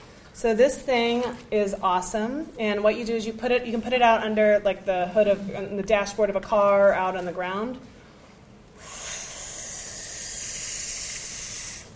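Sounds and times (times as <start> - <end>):
speech: 0.4 - 7.9
air hissing as inflatable solar lamp inflates: 8.8 - 11.9.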